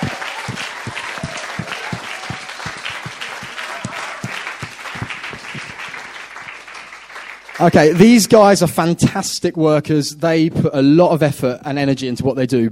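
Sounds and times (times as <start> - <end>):
round of applause: 0.0 - 8.2
speech: 7.6 - 12.6.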